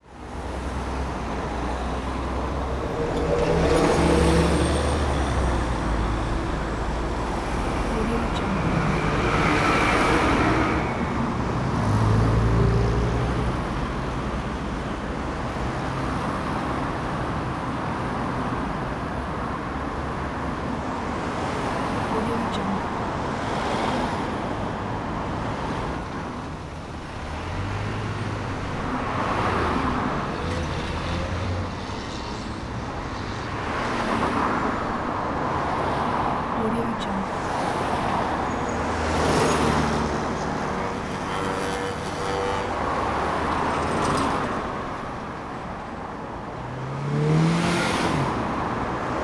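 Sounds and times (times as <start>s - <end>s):
traffic: 0.0s - 49.2s.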